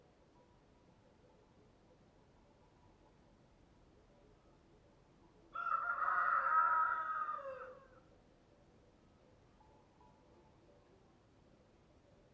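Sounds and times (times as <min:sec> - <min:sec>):
rooster crowing cock-a-doodle-doo: 0:05.5 - 0:07.9.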